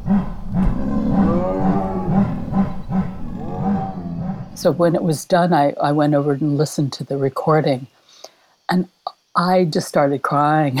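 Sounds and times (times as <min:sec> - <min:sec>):
chorus of big cats chuffing and moaning: 0:00.0 - 0:05.2
speech: 0:04.6 - 0:08.0, 0:08.7 - 0:10.7.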